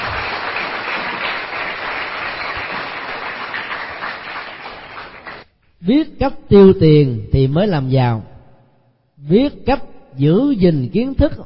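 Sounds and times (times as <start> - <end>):
children applauding: 0.0 - 5.4
speech: 5.8 - 8.3, 9.2 - 11.4.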